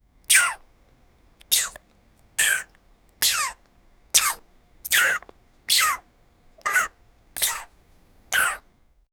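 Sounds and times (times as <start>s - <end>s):
French kissing: 0.3s - 0.6s, 1.4s - 1.8s, 2.4s - 3.6s, 4.2s - 6.0s, 6.6s - 7.7s, 8.4s - 8.6s.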